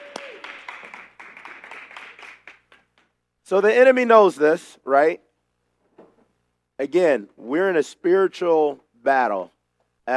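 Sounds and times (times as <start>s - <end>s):
audience applause: 0.0s - 3.0s
speech: 3.5s - 5.3s, 6.8s - 10.1s.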